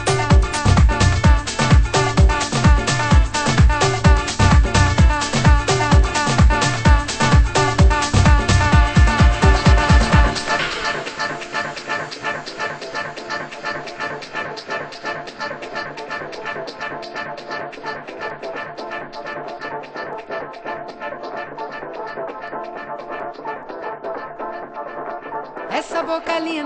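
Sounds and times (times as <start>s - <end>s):
rhythm: 0.0s - 26.4s.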